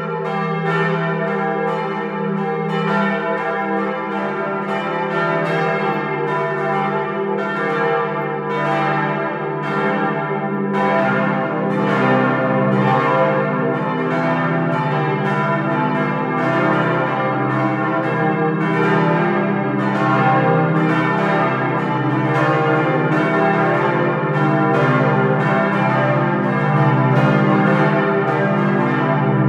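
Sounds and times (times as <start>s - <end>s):
full peal of parish church bells: 0.0s - 29.4s.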